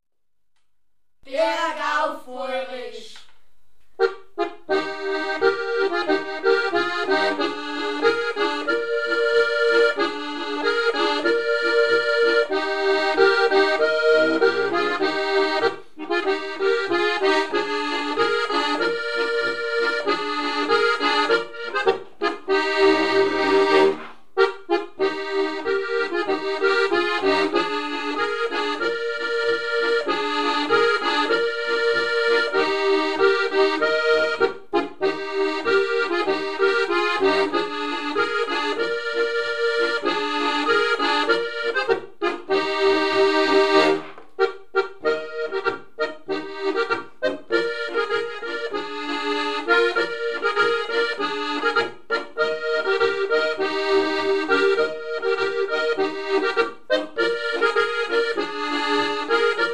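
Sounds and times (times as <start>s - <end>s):
Bavarian boarischer folk dance music: 1.2s - 59.7s.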